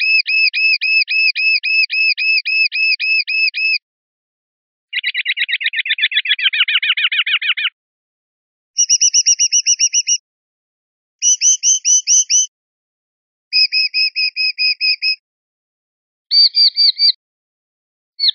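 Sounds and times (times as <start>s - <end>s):
sparrowhawk calls: 0.0s - 3.8s, 4.9s - 7.8s, 8.8s - 10.2s, 11.2s - 12.5s, 13.5s - 15.2s, 16.3s - 17.2s.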